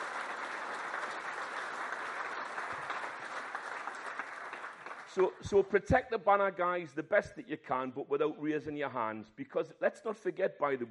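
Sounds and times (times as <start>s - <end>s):
audience applause: 0.0s - 5.6s
speech: 5.2s - 10.8s.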